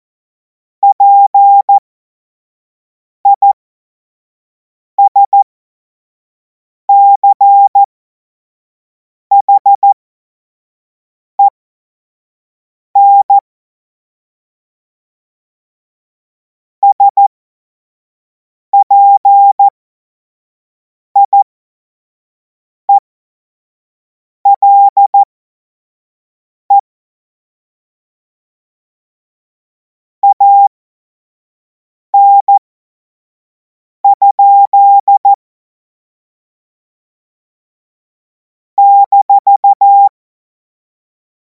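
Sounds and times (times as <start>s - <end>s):
morse code beeps: 0.8s - 1.8s, 3.3s - 3.6s, 5.0s - 5.4s, 6.9s - 7.9s, 9.3s - 10.0s, 13.0s - 13.4s, 16.8s - 17.3s, 18.8s - 19.7s, 21.2s - 21.4s, 24.5s - 25.3s, 30.2s - 30.7s, 32.2s - 32.6s, 34.0s - 35.4s, 38.8s - 40.2s.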